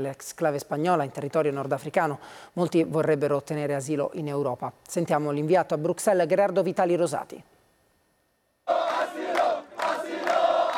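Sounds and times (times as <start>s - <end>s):
speech: 0.0s - 7.5s
protesters chanting in chorus: 8.7s - 10.7s.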